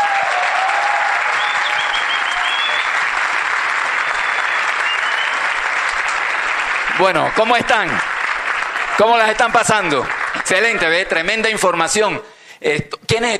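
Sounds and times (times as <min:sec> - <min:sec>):
audience applause: 0:00.0 - 0:11.5
faint whistle: 0:01.4 - 0:03.0, 0:04.0 - 0:05.4
speech: 0:07.0 - 0:08.1, 0:09.0 - 0:13.3.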